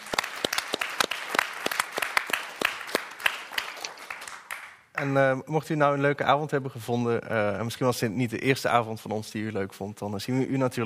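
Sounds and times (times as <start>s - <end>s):
audience applause: 0.0s - 5.1s
speech: 5.0s - 10.8s.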